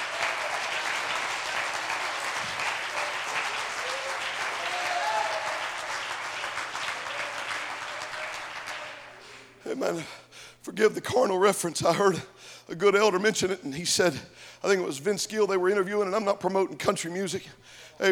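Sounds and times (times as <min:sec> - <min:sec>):
audience clapping: 0:00.0 - 0:09.6
speech: 0:09.8 - 0:18.0.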